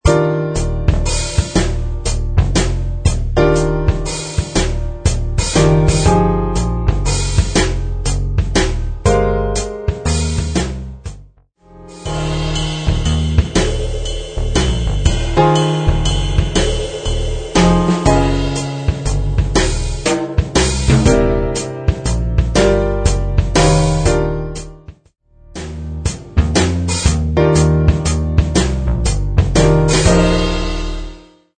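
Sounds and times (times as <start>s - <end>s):
30s noir jazz at 120 BPM: 0.0s - 31.5s.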